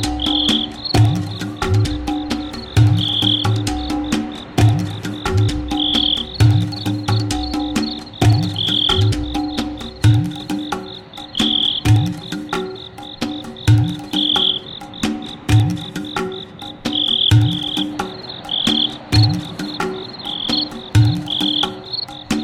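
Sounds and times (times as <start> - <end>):
crickets chirping: 0.0 - 22.4.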